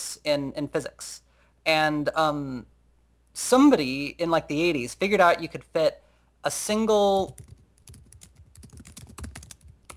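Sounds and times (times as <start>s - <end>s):
speech: 0.2s - 2.7s, 3.4s - 7.6s
typing on a computer keyboard: 7.2s - 9.9s.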